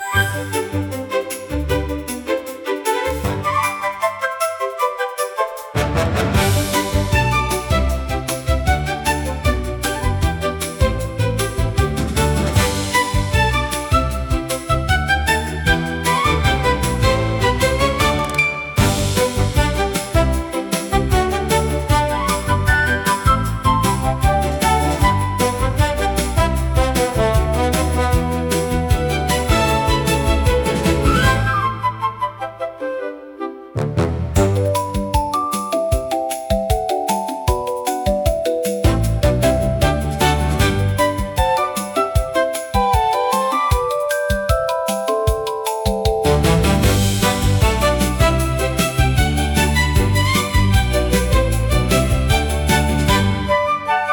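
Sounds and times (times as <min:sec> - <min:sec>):
bright cute fantasy music: 0:00.0 - 0:54.1.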